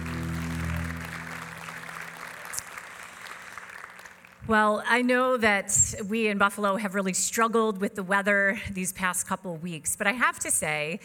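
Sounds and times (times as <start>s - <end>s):
low sustained musical drone: 0.0s - 2.6s
crowd applauding: 0.0s - 4.4s
speech: 4.5s - 11.0s.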